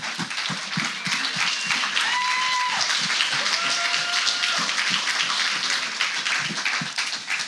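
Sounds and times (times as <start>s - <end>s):
audience applauding: 0.0s - 7.4s
whoops and cheers: 0.8s - 5.1s.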